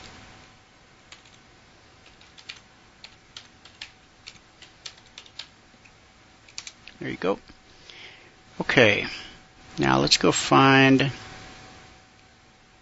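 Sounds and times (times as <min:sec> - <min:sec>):
low hiss: 0:00.0 - 0:12.8
keystrokes on a computer keyboard typing an address: 0:01.1 - 0:01.4, 0:02.0 - 0:07.0
speech: 0:07.0 - 0:07.6, 0:08.6 - 0:11.2.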